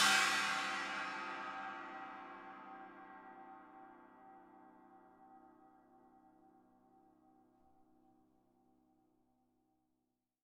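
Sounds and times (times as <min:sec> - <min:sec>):
Paiste Signature Thin China 16 inch cymbal: 0:00.0 - 0:07.4.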